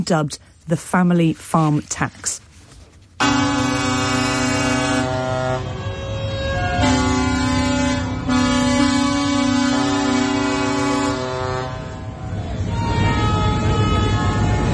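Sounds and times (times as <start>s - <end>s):
speech: 0.0s - 2.4s
protesting tractors honking in Whitehall: 3.2s - 14.7s.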